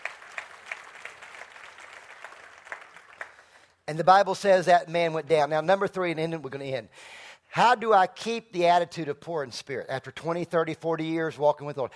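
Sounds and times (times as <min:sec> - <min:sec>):
audience clapping: 0:00.0 - 0:03.8
speech: 0:03.9 - 0:11.9.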